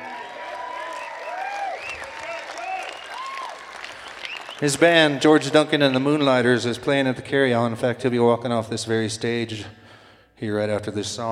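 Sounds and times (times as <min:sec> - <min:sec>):
audience applause for a steel guitar player at a live show: 0:00.0 - 0:05.4
speech: 0:04.6 - 0:09.8, 0:10.4 - 0:11.2.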